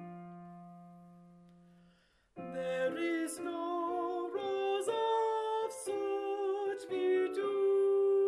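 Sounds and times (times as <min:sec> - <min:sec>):
alto voice singing: 0:02.4 - 0:08.2.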